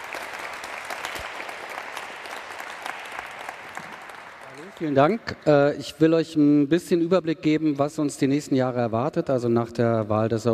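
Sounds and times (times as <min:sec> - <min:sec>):
audience applause: 0:00.0 - 0:05.4
speech: 0:04.8 - 0:10.5.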